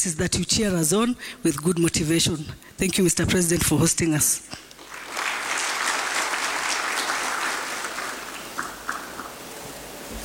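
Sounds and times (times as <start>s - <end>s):
speech: 0.0s - 4.7s
applause: 4.7s - 9.3s.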